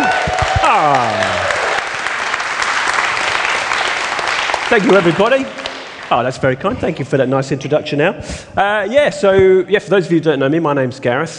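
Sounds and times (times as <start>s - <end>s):
applause: 0.0s - 6.4s
speech: 4.7s - 11.3s.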